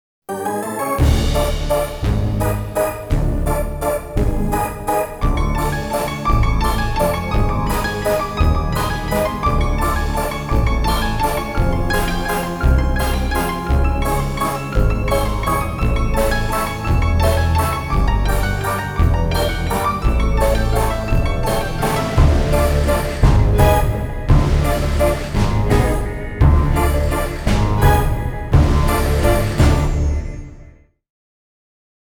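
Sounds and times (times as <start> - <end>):
waltz music: 0.3 - 30.7.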